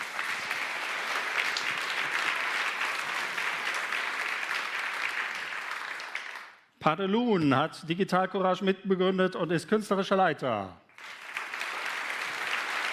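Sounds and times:
applause: 0.0s - 6.8s, 10.9s - 12.9s
speech: 6.8s - 11.2s.

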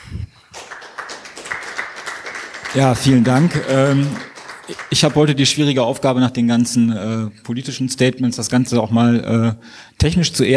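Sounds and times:
audience applause at a technical talk: 0.5s - 5.6s
speech: 2.7s - 10.5s.

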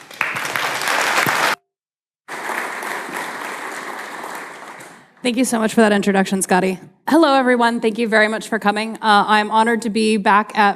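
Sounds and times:
audience applause: 0.0s - 1.6s, 2.3s - 5.2s
speech: 5.2s - 10.7s.

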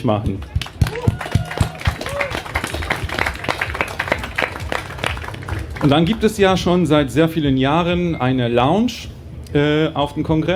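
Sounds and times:
speech: 0.0s - 0.6s, 5.8s - 10.5s
audience applause: 0.4s - 6.5s
whoops and voices: 0.8s - 2.6s.

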